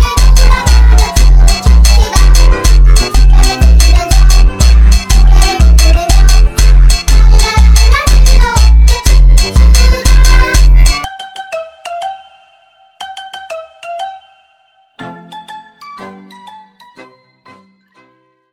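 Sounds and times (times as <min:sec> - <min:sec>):
sped up funk music: 0:00.0 - 0:11.1.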